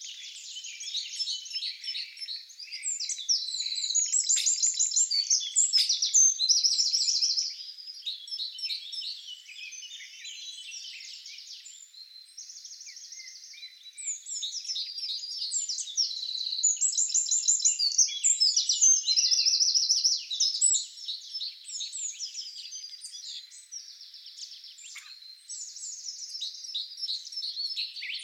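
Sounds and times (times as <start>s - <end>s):
Eurasian wren song: 0.0s - 28.2s.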